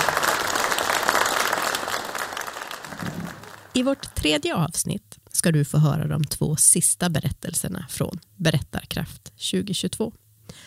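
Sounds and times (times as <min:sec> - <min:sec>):
audience applause: 0:00.0 - 0:04.4
speech: 0:03.8 - 0:10.2.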